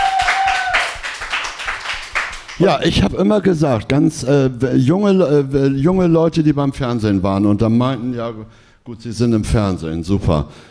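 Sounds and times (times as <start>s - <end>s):
audience clapping at a live stage event honoring a bartender: 0.0s - 2.8s
speech: 2.6s - 10.6s.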